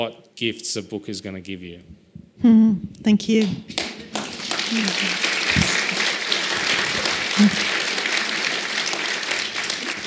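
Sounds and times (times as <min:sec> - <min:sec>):
speech: 0:00.0 - 0:03.9, 0:04.7 - 0:05.7, 0:07.4 - 0:07.7
audience clapping: 0:03.4 - 0:10.0
laughter: 0:04.7 - 0:08.5.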